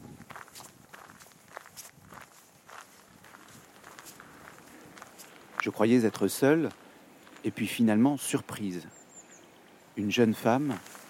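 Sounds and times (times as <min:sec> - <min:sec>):
footsteps walking through the Rambouillet forest: 0:00.0 - 0:07.8, 0:10.4 - 0:11.0
speech: 0:05.6 - 0:06.8, 0:07.4 - 0:09.0, 0:10.0 - 0:10.9.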